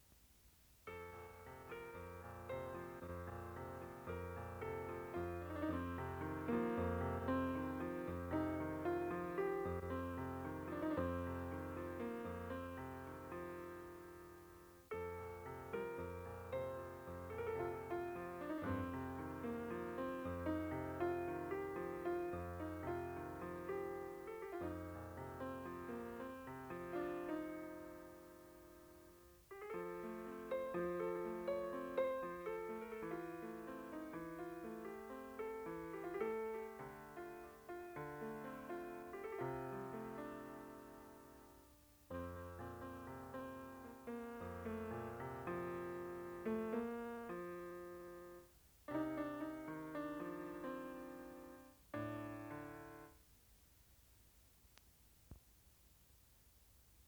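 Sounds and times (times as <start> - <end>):
solo piano: 0.0 - 53.4.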